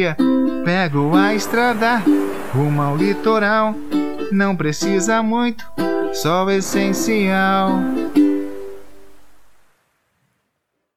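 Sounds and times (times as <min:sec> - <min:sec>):
person singing: 0:00.0 - 0:08.6
ukulele: 0:00.0 - 0:09.4.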